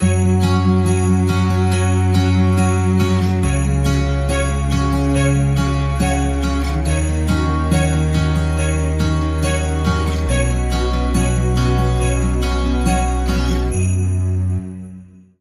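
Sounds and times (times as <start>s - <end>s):
joyful soft acoustic Christmas music: 0.0s - 15.3s.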